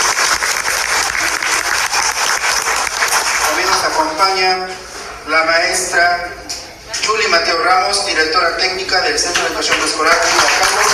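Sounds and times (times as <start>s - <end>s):
audience applause: 0.0s - 4.2s, 9.4s - 10.9s
speech: 4.2s - 10.9s.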